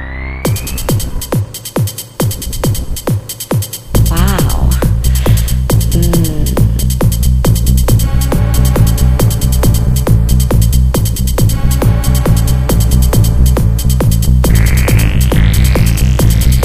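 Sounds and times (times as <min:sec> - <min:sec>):
kick drum: 0:00.5 - 0:16.6.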